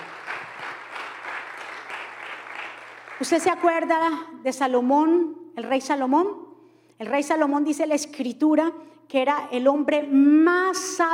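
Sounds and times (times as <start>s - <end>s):
audience applause: 0.0s - 3.4s
speech: 3.2s - 6.4s, 7.0s - 11.1s.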